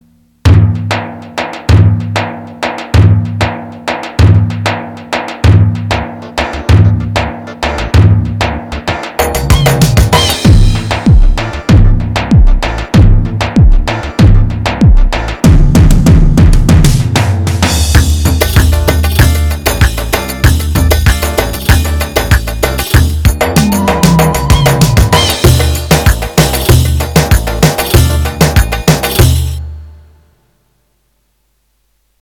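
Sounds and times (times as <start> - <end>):
2/4 davul drum rhythm on a Roland GW-8: 0.3 - 29.9.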